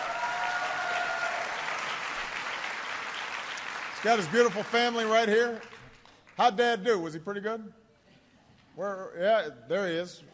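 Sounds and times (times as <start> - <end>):
audience applause: 0.0 - 6.4
speech: 4.0 - 5.8, 6.4 - 7.8, 8.8 - 10.3.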